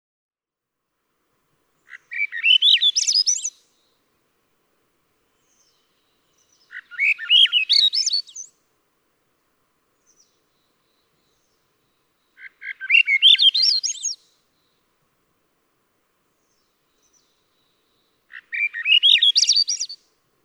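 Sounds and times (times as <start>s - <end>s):
Swainson's thrush singing a rising spiralling whistled phrase: 2.1s - 3.8s, 6.4s - 8.6s, 12.8s - 14.4s, 16.5s - 20.1s.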